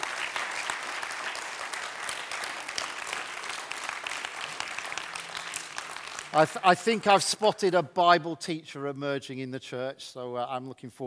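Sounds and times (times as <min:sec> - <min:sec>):
crowd clapping: 0:00.0 - 0:07.5
speech: 0:06.3 - 0:11.0.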